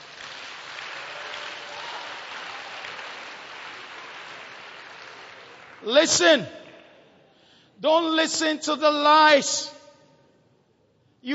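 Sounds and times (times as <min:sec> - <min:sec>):
audience applause: 0:00.0 - 0:06.0
speech: 0:05.8 - 0:06.6, 0:07.8 - 0:09.8.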